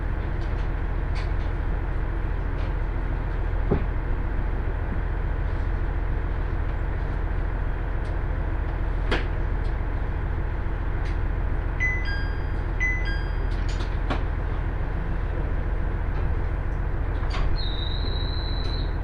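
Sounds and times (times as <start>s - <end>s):
two-car KiHa 110 diesel train running between Morioka and Obuke: 0.0s - 19.0s
beeping chime tones: 11.8s - 13.6s.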